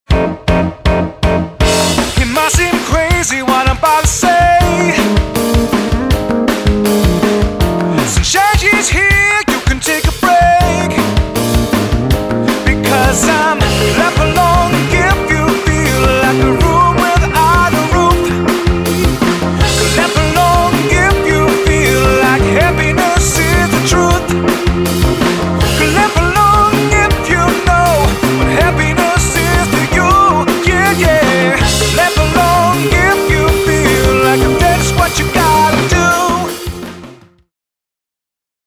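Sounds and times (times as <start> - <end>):
happy downbeat music: 0.0 - 37.4.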